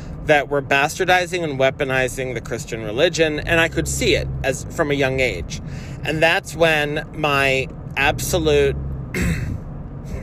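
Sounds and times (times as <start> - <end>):
speech: 0.3 - 9.4
throat clearing: 9.2 - 9.6.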